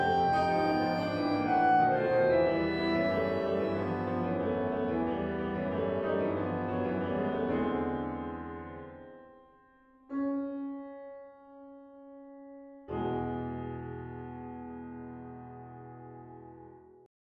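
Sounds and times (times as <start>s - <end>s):
clarinet playing a romance: 0.0s - 7.5s
piano: 0.0s - 17.1s.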